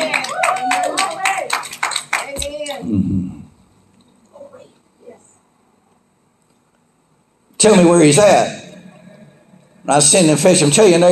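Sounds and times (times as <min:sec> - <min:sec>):
audience hand clapping: 0:00.0 - 0:02.8
speech: 0:07.6 - 0:08.6, 0:09.9 - 0:11.1.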